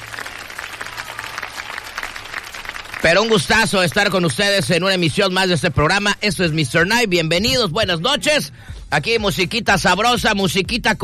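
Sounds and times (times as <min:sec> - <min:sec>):
applause: 0:00.0 - 0:06.8
speech: 0:03.0 - 0:11.0.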